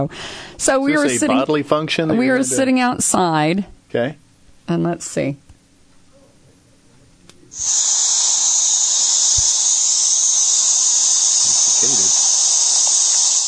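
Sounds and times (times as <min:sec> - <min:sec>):
speech: 0:00.0 - 0:05.4, 0:07.6 - 0:08.4
cicadas buzzing outdoors: 0:07.5 - 0:13.4.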